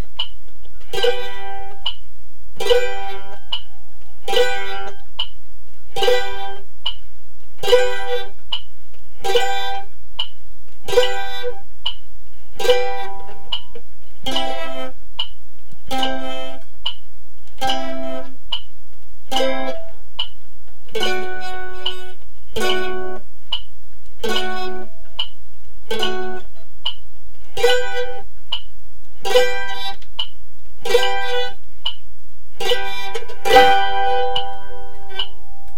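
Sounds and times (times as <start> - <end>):
mandolin G chord changes: 0.8 - 2.0, 2.6 - 5.2, 5.9 - 6.7, 7.6 - 8.5, 9.1 - 10.0, 10.8 - 11.7, 12.3 - 15.0, 15.8 - 16.8, 17.5 - 18.4, 19.2 - 20.2, 20.9 - 23.3, 24.1 - 26.6, 27.4 - 28.3, 29.1 - 30.2, 30.8 - 31.6, 32.5 - 35.7.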